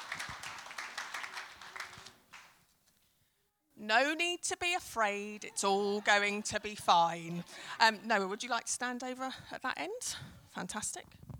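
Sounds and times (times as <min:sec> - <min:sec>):
crowd clapping: 0:00.0 - 0:02.7
speech: 0:03.8 - 0:11.2
laughter: 0:05.3 - 0:08.4.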